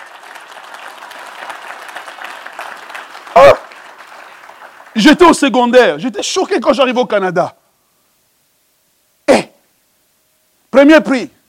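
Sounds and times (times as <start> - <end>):
audience applause: 0.0 - 5.6
speech: 3.4 - 3.6, 5.0 - 7.6, 10.8 - 11.4.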